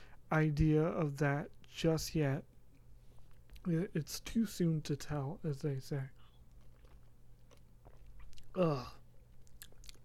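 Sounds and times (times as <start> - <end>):
speech: 0.3 - 2.5, 3.6 - 6.2, 8.6 - 9.0
person drinking water: 6.2 - 10.0.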